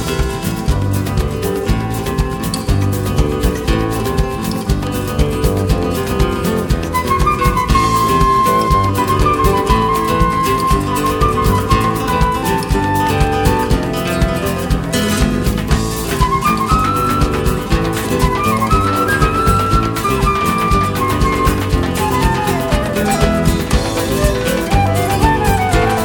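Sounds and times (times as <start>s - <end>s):
classical guitar: 0.0s - 26.0s.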